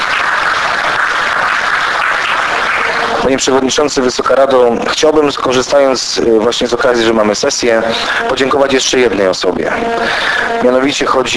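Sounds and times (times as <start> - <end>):
council session audience applauding two top-achieving students: 0.0 - 4.8, 9.9 - 11.3
speech: 3.3 - 11.3.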